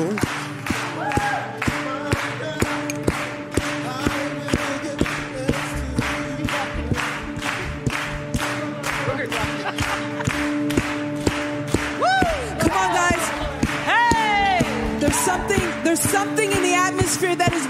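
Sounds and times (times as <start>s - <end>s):
audience clapping hands: 0.0s - 17.6s
laughter: 9.0s - 10.8s.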